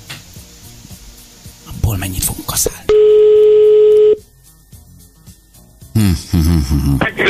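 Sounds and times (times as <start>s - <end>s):
speech: 2.0s - 3.4s, 6.0s - 7.2s
steady telephone dial tone: 2.9s - 4.2s.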